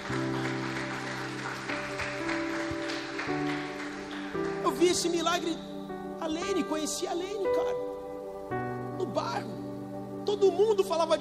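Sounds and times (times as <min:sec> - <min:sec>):
audience applause: 0:00.0 - 0:05.0
sustained keyboard chords: 0:00.0 - 0:11.1
speech: 0:04.8 - 0:05.7, 0:06.3 - 0:07.9, 0:09.2 - 0:09.6, 0:10.3 - 0:11.1.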